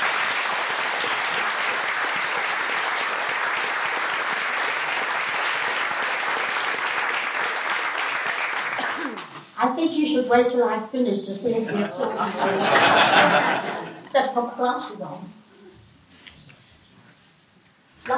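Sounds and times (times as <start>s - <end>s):
audience applause welcoming a speaker: 0.0s - 9.4s
speech: 9.6s - 15.4s
laughter: 11.6s - 14.1s.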